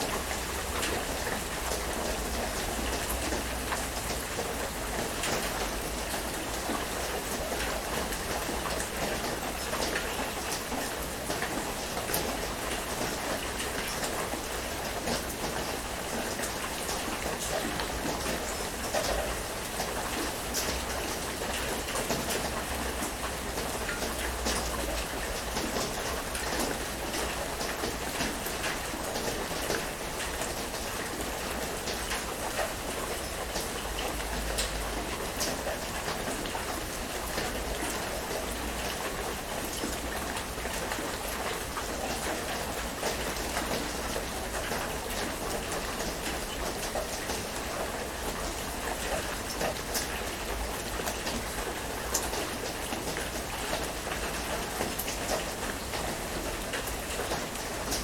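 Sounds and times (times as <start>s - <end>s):
rain: 0.0s - 58.0s.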